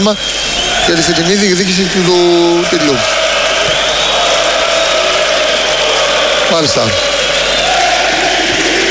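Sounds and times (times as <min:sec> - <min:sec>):
speech: 0:00.0 - 0:03.2, 0:06.5 - 0:07.1
stadium crowd chanting: 0:00.2 - 0:08.9.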